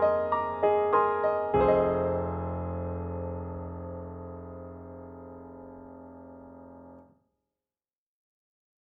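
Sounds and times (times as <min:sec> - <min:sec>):
KORG KRONOS 2 dark grand piano: 0:00.0 - 0:07.0.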